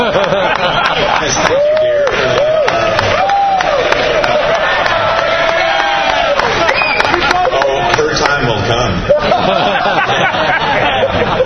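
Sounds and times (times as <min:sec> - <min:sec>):
laughter: 0:00.0 - 0:03.1, 0:03.9 - 0:05.4, 0:06.5 - 0:11.4
crowd clapping: 0:00.0 - 0:11.4.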